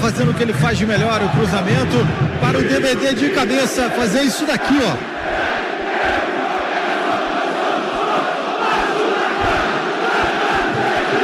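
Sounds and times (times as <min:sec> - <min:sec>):
stadium crowd cheering after a goal: 0:00.0 - 0:11.2
speech: 0:00.1 - 0:06.2.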